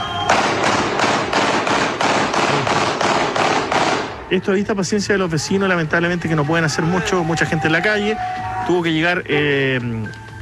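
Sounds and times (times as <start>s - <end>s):
fireworks exploding: 0.0s - 4.3s
speech: 4.3s - 10.2s.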